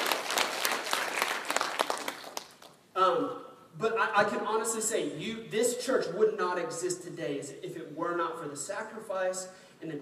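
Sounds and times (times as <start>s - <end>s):
audience applauding: 0.0s - 2.8s
speech: 3.0s - 9.9s.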